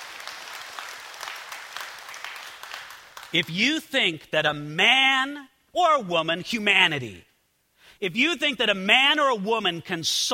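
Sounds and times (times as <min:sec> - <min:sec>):
applause: 0:00.0 - 0:03.5
speech: 0:03.3 - 0:07.3, 0:08.0 - 0:10.3.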